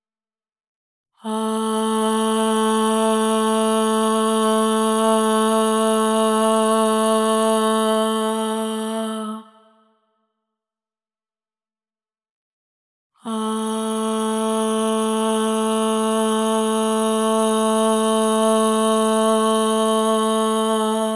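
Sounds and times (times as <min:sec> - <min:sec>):
voice singing ahh at 432 Hz with reverb: 0:01.2 - 0:09.9, 0:13.2 - 0:21.1.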